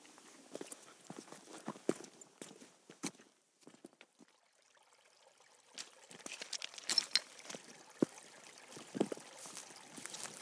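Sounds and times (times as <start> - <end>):
footsteps descending a slippery wet rocky hillside by old slate quarries: 0.0 - 4.0, 5.8 - 8.1, 8.8 - 10.4.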